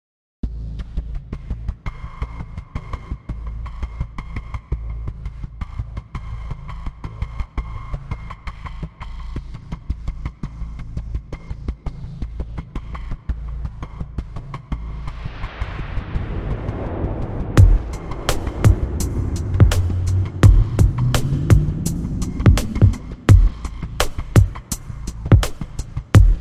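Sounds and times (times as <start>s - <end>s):
desert Texas drums: 0.4s - 26.3s.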